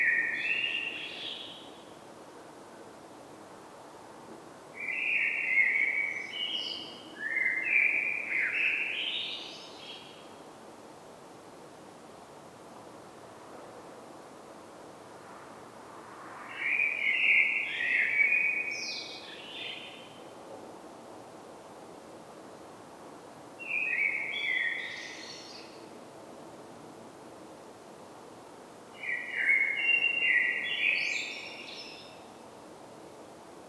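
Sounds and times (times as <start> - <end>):
common blackbird song: 0.0 - 1.7, 4.8 - 10.2, 16.5 - 20.2, 23.6 - 25.8, 29.0 - 32.3
steady hiss: 0.0 - 33.6.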